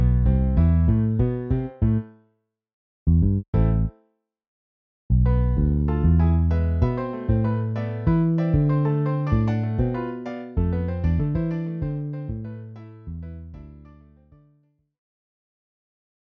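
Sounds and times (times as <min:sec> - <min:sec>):
piano bass notes: 0:00.0 - 0:02.1, 0:03.1 - 0:04.0, 0:05.1 - 0:14.4.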